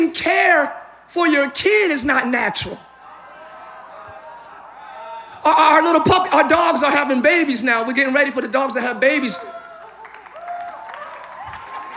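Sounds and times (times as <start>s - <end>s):
speech: 0.0s - 2.9s, 5.4s - 9.6s
audience clapping: 9.3s - 11.9s.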